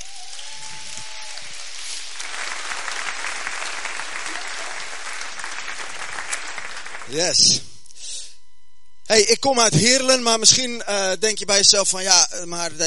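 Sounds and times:
crowd applause: 0:00.0 - 0:07.6
speech: 0:07.1 - 0:07.7, 0:09.1 - 0:12.8.

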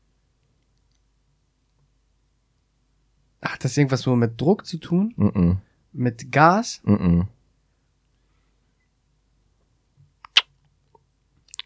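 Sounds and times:
speech: 0:03.4 - 0:07.4
noisy lip smacking: 0:10.2 - 0:10.6, 0:11.5 - 0:11.6.

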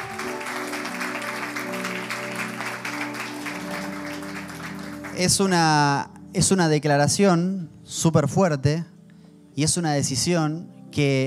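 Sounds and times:
audience applause: 0:00.0 - 0:05.5
speech: 0:05.2 - 0:08.9, 0:09.6 - 0:11.2.

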